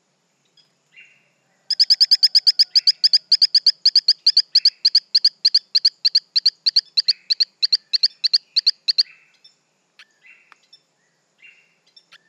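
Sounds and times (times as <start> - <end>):
Torrent frog Hylodes phyllodes chirping: 1.7 - 9.5.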